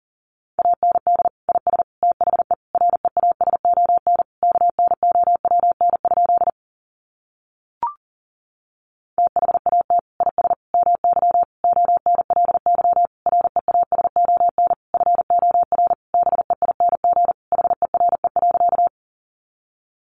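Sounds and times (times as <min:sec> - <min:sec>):
Morse code beeps at 40wpm: 0:00.6 - 0:06.5, 0:09.2 - 0:18.9.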